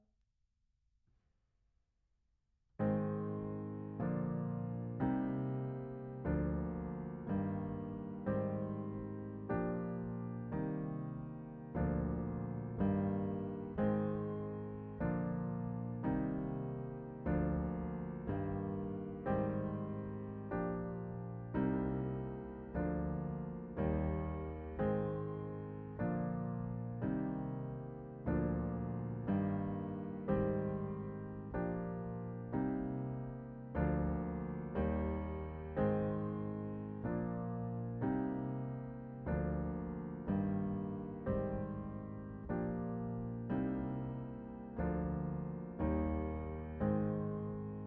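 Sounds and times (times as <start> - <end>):
piano: 2.8 - 47.8.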